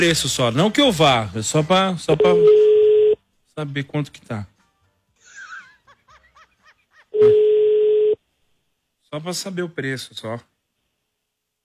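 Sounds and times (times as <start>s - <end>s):
speech: 0.0s - 2.7s, 3.6s - 4.5s, 9.1s - 10.5s
phone ringback tone, unanswered: 2.2s - 3.2s, 7.2s - 8.2s.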